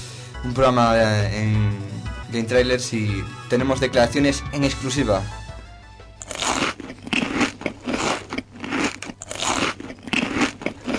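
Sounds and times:
speech: 0.4s - 5.4s
person chewing food loudly: 6.2s - 10.9s.

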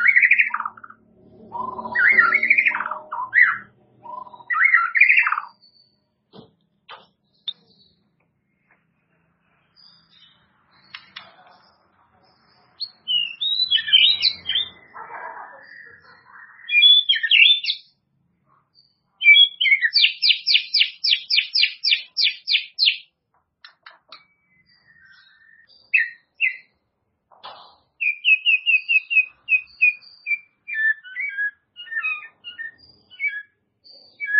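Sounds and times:
White-rumped shama whistling song: 0.0s - 6.0s, 12.8s - 17.9s, 19.2s - 26.8s, 27.9s - 34.3s.

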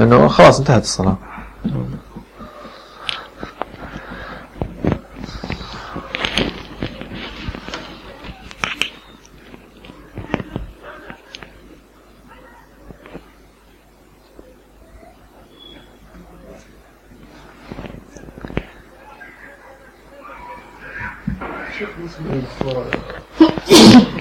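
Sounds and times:
speech: 0.0s - 2.1s
people murmuring and shuffling: 0.8s - 24.1s
sneeze: 23.4s - 24.1s.

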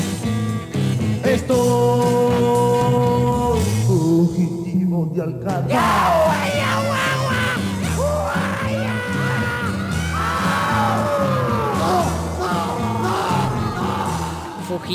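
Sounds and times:
loud music with steady pulsing bass line: 0.0s - 4.3s, 5.4s - 14.9s
speech: 1.4s - 1.8s, 5.0s - 7.0s, 14.8s - 14.9s
man yelling and whooping: 5.7s - 14.6s.

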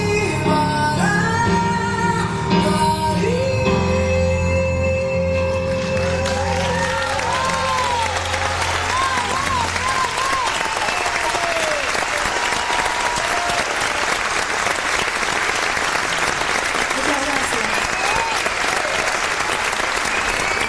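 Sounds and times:
music: 0.0s - 11.2s
audience applauding: 5.7s - 20.6s.

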